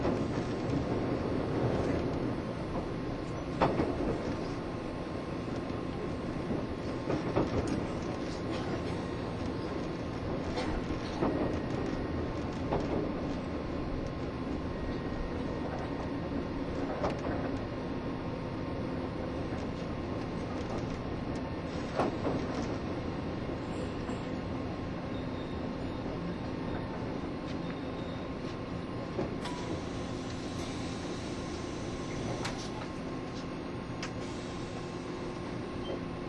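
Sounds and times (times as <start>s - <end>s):
sharp clacks and thumps from the track: 0.0s - 4.6s, 5.5s - 17.7s, 19.4s - 23.0s
Taiwan Railways EMU1200 electric train running at speed: 0.0s - 36.2s.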